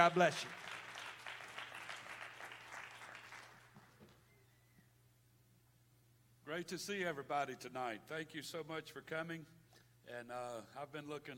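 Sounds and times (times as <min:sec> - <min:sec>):
speech: 0:00.0 - 0:00.6, 0:06.5 - 0:11.3
audience clapping: 0:00.0 - 0:04.2.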